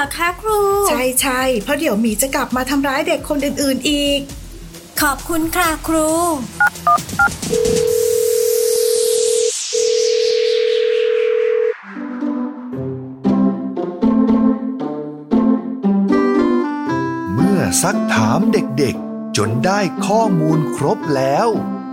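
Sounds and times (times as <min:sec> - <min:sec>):
speech: 0:00.0 - 0:04.4, 0:05.0 - 0:08.0, 0:17.8 - 0:21.8
phone keypad tones: 0:06.6 - 0:08.0
long steady phone tone: 0:06.6 - 0:11.8
plinking electronic melody: 0:06.6 - 0:14.8, 0:15.4 - 0:21.9.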